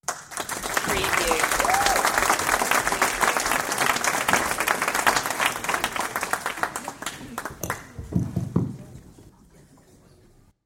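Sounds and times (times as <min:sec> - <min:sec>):
audience applause: 0:00.0 - 0:08.6.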